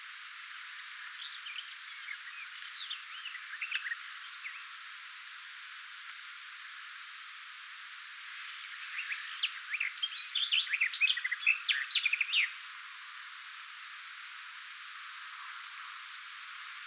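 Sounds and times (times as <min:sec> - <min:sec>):
garden warbler singing in bushes: 0:00.8 - 0:04.7, 0:08.5 - 0:12.6.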